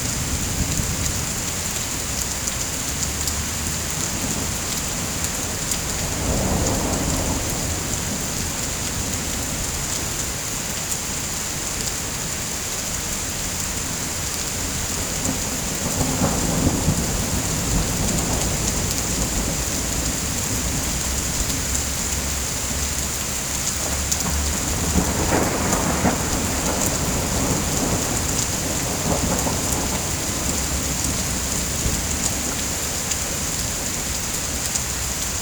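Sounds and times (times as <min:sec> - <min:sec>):
rain: 0:00.0 - 0:35.4
thunder: 0:05.8 - 0:08.6, 0:15.1 - 0:21.2, 0:23.8 - 0:32.8.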